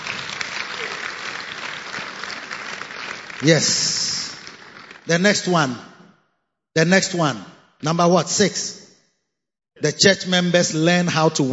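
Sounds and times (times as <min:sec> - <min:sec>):
audience clapping: 0:00.0 - 0:06.0
speech: 0:03.4 - 0:04.0, 0:05.1 - 0:05.9, 0:06.8 - 0:08.8, 0:09.8 - 0:11.5.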